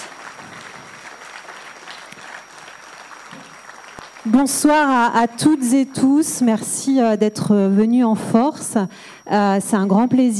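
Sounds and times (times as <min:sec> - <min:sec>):
evening audience applause at a cultural centre: 0:00.0 - 0:05.7
speech: 0:04.2 - 0:10.3.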